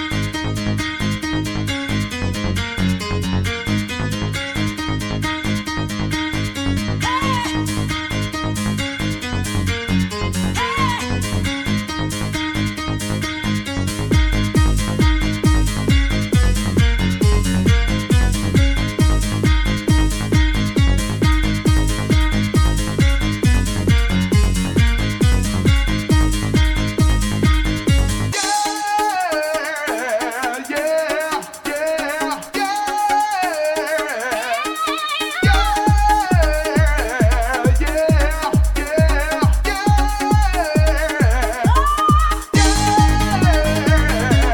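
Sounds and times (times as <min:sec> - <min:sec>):
trance music: 0:00.2 - 0:44.5.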